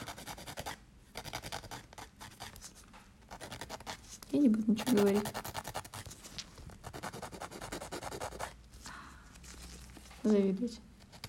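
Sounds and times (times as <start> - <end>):
nail filing during manicure: 0.0 - 8.6
speech: 4.3 - 5.5, 10.3 - 10.9.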